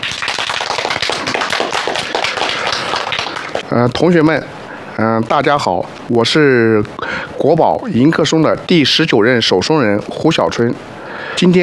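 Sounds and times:
audience applause: 0:00.0 - 0:03.6
speech: 0:03.7 - 0:11.6.

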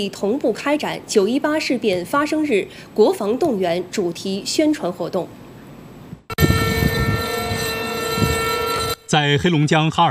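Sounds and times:
speech: 0:00.0 - 0:05.4, 0:09.1 - 0:10.0
long solemn air raid siren across the city: 0:06.3 - 0:09.0.

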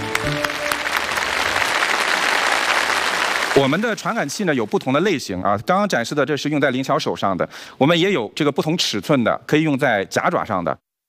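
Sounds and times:
audience applause: 0:00.0 - 0:04.6
speech: 0:03.6 - 0:10.8.

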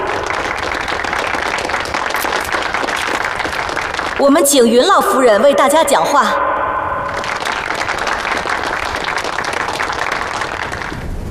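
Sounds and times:
warm crowd applause: 0:00.0 - 0:05.0, 0:07.0 - 0:11.3
speech: 0:04.2 - 0:06.5.

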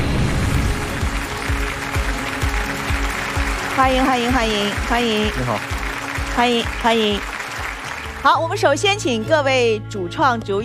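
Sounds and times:
audience applause: 0:00.0 - 0:08.5
speech: 0:03.8 - 0:05.8, 0:06.4 - 0:07.3, 0:08.2 - 0:10.6.

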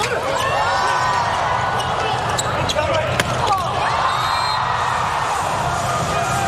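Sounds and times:
arena crowd cheering: 0:00.2 - 0:02.4, 0:03.3 - 0:06.4
volleyball serve strikes: 0:03.1 - 0:03.7.

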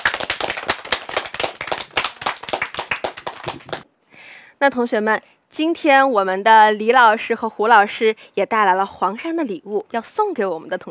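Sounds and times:
group of students clapping: 0:00.0 - 0:03.8
speech: 0:04.6 - 0:10.8.

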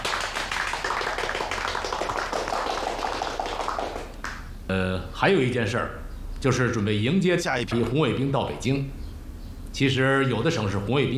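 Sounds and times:
applause: 0:00.0 - 0:04.5
speech: 0:04.7 - 0:09.0, 0:09.8 - 0:11.1.

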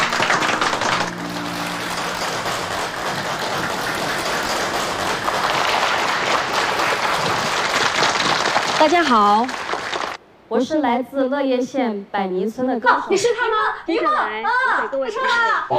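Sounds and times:
crowd applauding for a singer: 0:00.0 - 0:10.2
speech: 0:08.8 - 0:09.6, 0:10.5 - 0:15.7.

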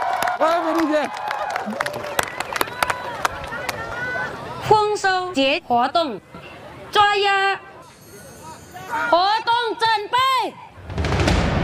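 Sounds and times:
small outdoor crowd clapping: 0:00.0 - 0:04.1
speech: 0:00.4 - 0:02.1, 0:04.6 - 0:07.7, 0:08.9 - 0:10.6
chatter and voices: 0:01.7 - 0:10.8.

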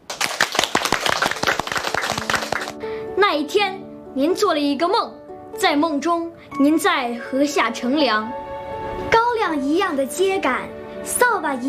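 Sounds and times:
crowd applause: 0:00.1 - 0:02.8
speech: 0:03.3 - 0:08.4, 0:09.5 - 0:11.6.

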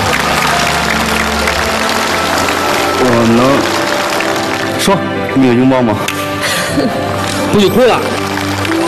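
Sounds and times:
audience applause: 0:00.0 - 0:06.0, 0:06.6 - 0:08.8
speech: 0:03.1 - 0:03.7, 0:04.8 - 0:06.2, 0:06.8 - 0:08.2.

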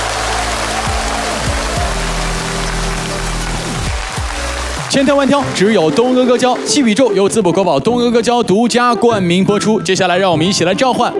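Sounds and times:
audience applause: 0:00.0 - 0:07.5
speech: 0:05.0 - 0:11.1.

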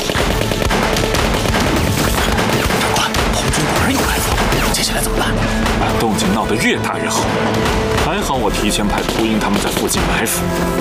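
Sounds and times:
gunfire in a battle: 0:00.0 - 0:05.0, 0:08.9 - 0:10.2
speech: 0:06.0 - 0:10.7.

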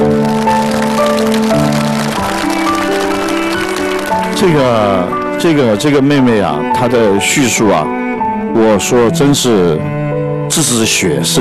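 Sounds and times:
audience applause: 0:00.0 - 0:06.3
sustained melodic music: 0:00.0 - 0:11.3
speech: 0:04.4 - 0:11.3.

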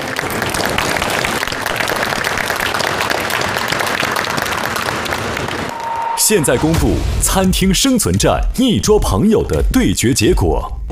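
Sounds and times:
crowd applause: 0:00.0 - 0:06.7
speech: 0:06.3 - 0:10.8.

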